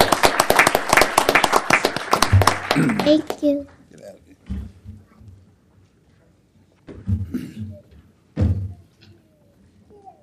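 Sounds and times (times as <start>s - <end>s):
small group clapping for children at a council meeting: 0.0s - 3.9s
speech: 3.1s - 3.8s.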